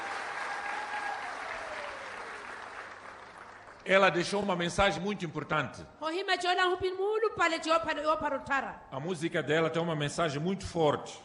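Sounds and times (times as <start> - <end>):
audience applause: 0.0 - 4.3
speech: 3.9 - 11.2.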